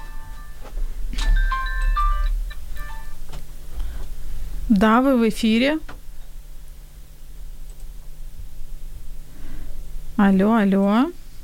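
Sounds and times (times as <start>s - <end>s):
telephone ringing with an electronic melodic tone: 0.0s - 3.3s
low steady hum: 0.0s - 11.4s
speech: 4.7s - 5.9s, 10.3s - 11.2s.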